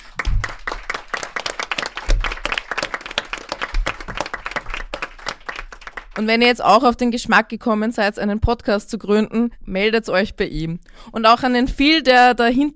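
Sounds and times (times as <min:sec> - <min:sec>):
audience applause: 0:00.0 - 0:06.2
speech: 0:06.2 - 0:12.7.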